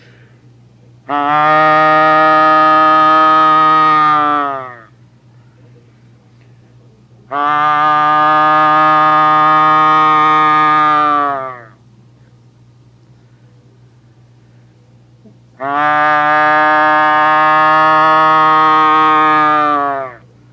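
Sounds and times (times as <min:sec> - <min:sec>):
hunter imitating loud drawn-out cow moose calls: 0:01.1 - 0:05.0, 0:07.3 - 0:11.8, 0:15.6 - 0:20.3.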